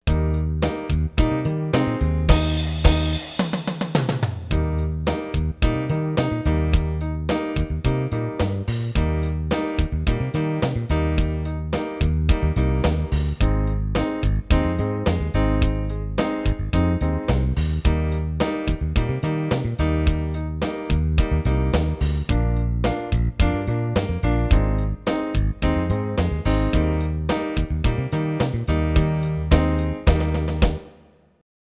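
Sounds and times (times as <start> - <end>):
slow blues: 0.1 - 30.9.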